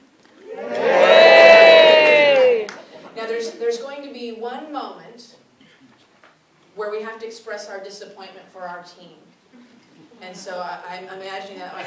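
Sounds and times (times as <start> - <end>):
audience cheering: 0.3 - 3.1
speech: 6.9 - 11.8.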